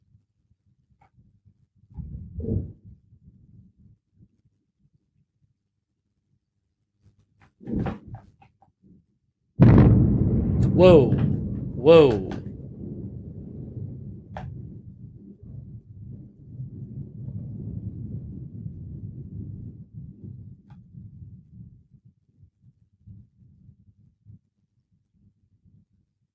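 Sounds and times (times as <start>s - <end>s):
airstrike explosions: 9.6s - 16.8s
speech: 10.8s - 11.2s, 11.8s - 12.4s.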